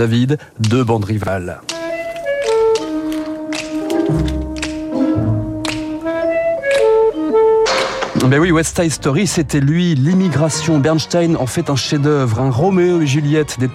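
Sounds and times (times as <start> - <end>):
speech: 0.0 - 1.7, 8.2 - 13.7
finger snapping: 1.6 - 8.0.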